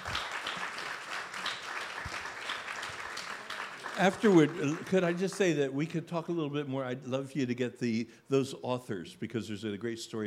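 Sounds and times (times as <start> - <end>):
audience applause: 0.0 - 5.5
speech: 4.0 - 10.2.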